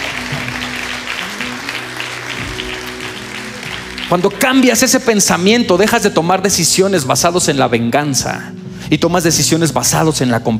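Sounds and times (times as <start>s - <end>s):
audience applauding together: 0.0s - 5.4s
speech: 4.1s - 10.5s.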